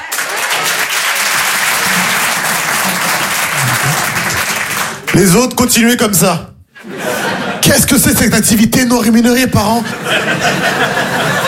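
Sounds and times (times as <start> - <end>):
laughter: 0.0 - 4.8, 6.8 - 8.2, 9.8 - 11.4
sizable audience applause: 0.0 - 5.4
speech: 5.2 - 6.5, 7.6 - 11.4.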